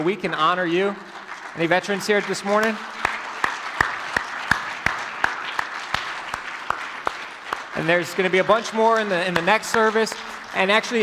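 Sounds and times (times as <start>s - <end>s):
speech: 0.0s - 3.0s, 7.8s - 11.0s
crowd applauding: 0.0s - 11.0s
clapper's sharp evenly spaced claps: 1.1s - 11.0s.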